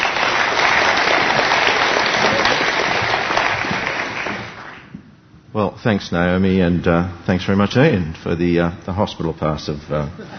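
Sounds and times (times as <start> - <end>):
audience applause: 0.0 - 4.9
speech: 5.6 - 10.3.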